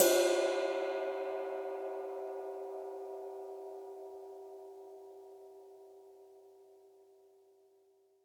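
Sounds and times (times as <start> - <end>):
ride cymbal: 0.0 - 2.5.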